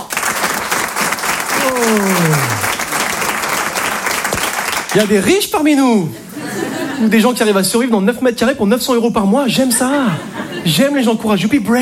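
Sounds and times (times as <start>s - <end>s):
audience applause: 0.0s - 5.2s
speech: 1.6s - 2.6s, 5.0s - 6.2s, 7.0s - 11.8s
laughter: 1.6s - 2.9s, 6.1s - 7.6s, 9.5s - 11.2s.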